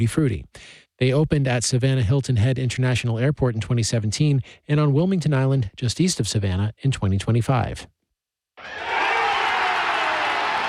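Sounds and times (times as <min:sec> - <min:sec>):
speech: 0:00.0 - 0:08.0
baseball fans at Truist Park cheering the final out of a Braves win: 0:08.6 - 0:10.6.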